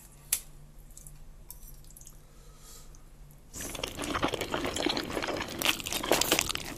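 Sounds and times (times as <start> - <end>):
wet chewing and slurping of fried instant noodles: 3.6 - 6.7.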